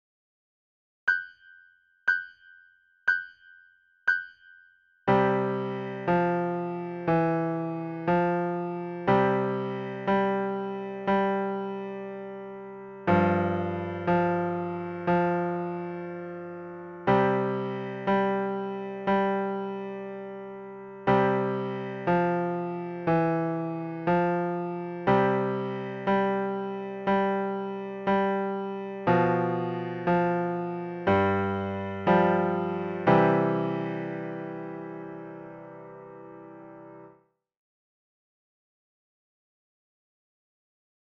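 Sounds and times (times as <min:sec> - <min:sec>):
nursery rhyme duet: 0:05.1 - 0:36.2.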